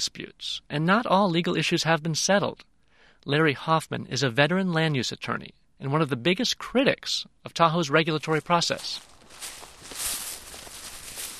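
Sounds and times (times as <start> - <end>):
speech: 0.0 - 9.6
footsteps crossing a small residential lot at Lake Tahoe: 8.2 - 11.3
light rustling: 8.9 - 11.3.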